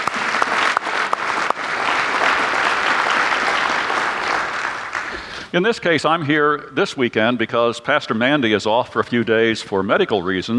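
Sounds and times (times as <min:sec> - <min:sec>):
audience applause: 0:00.0 - 0:05.5
speech: 0:05.5 - 0:10.5.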